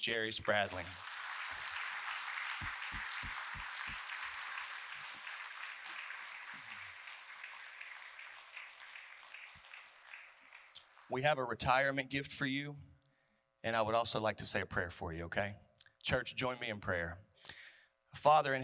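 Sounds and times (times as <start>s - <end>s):
speech: 0.0s - 1.1s, 11.1s - 12.9s, 13.6s - 18.6s
audience applause: 0.3s - 10.8s.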